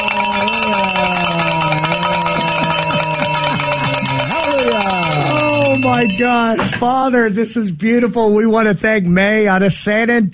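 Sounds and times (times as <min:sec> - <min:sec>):
hand bell ringing loudly: 0:00.0 - 0:06.6
speech: 0:06.0 - 0:10.3.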